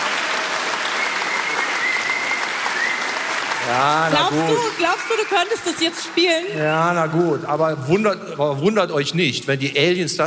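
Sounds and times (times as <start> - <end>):
audience applause: 0.0 - 7.7
speech: 3.7 - 10.2.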